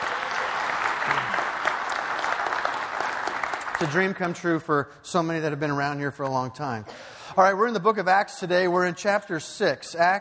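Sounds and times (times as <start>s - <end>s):
audience applause: 0.0s - 4.4s
speech: 3.8s - 10.1s.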